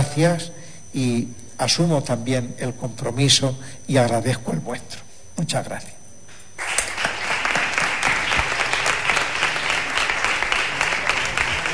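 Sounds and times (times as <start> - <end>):
speech: 0.2 - 6.0
ovation and applause in a chapel: 6.6 - 11.7.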